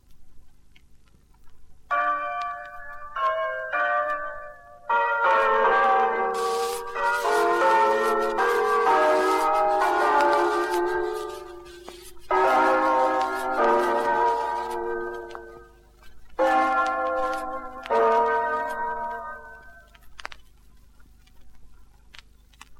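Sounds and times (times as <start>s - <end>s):
bells ringing: 1.9s - 19.9s.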